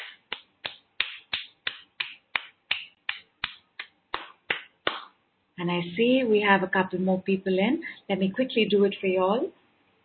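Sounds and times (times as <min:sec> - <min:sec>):
group doing a shaking-off hand clap: 0:00.0 - 0:05.2
speech: 0:05.6 - 0:09.6.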